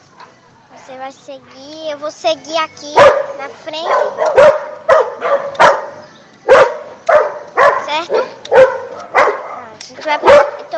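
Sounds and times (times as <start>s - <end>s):
speech: 0.9s - 4.6s, 10.1s - 10.5s
dog barking: 3.0s - 10.7s.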